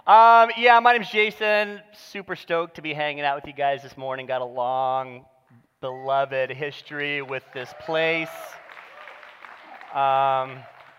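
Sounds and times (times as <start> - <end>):
speech: 0.1 - 8.6, 10.0 - 10.7
crowd applause: 7.0 - 10.9
loud sustained cheer or shout: 7.0 - 10.9.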